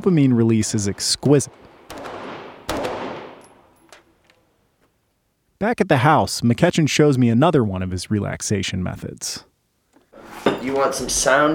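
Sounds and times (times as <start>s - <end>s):
speech: 0.0s - 1.7s, 5.7s - 9.5s, 10.6s - 11.5s
gunfire while out shooting: 0.9s - 3.8s.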